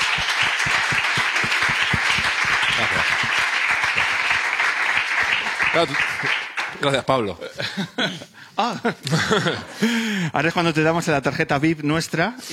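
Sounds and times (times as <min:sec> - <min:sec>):
laughter: 0:00.0 - 0:04.6, 0:07.4 - 0:10.1
crowd applause: 0:00.0 - 0:07.0
speech: 0:05.8 - 0:12.5.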